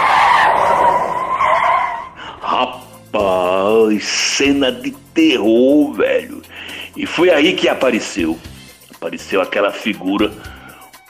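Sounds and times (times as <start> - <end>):
car tires skidding on asphalt: 0.0 - 2.6
speech: 3.1 - 6.4, 7.0 - 10.5.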